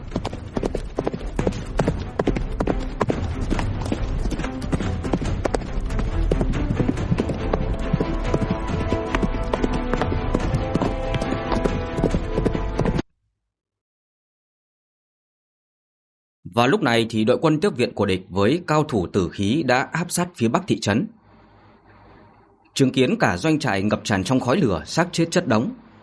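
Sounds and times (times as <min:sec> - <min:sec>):
black horse and two others galloping out of a forest: 0:00.0 - 0:13.0
speech: 0:16.6 - 0:21.2, 0:22.8 - 0:25.9.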